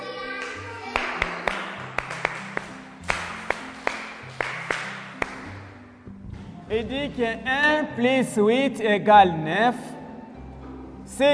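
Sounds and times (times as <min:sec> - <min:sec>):
classroom applause: 0:00.0 - 0:05.6
speech: 0:06.7 - 0:09.9, 0:11.2 - 0:11.3.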